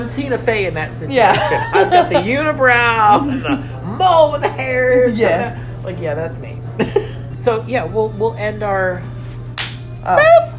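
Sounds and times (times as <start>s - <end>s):
speech: 0.0s - 9.1s, 10.0s - 10.5s
laughter: 1.2s - 2.4s, 6.8s - 7.3s
hand clap: 9.6s - 9.9s.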